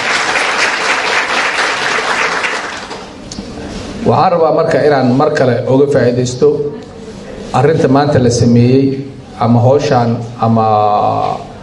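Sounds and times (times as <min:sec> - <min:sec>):
audience applauding for the director at a Somali-speaking gathering: 0:00.0 - 0:03.2
speech: 0:04.1 - 0:06.8, 0:07.6 - 0:11.4.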